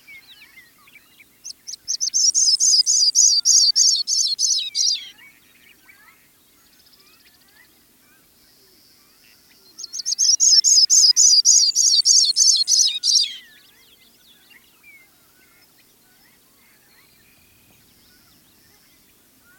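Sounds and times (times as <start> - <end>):
Sprague's pipit calling: 1.4 - 5.3, 9.8 - 13.5.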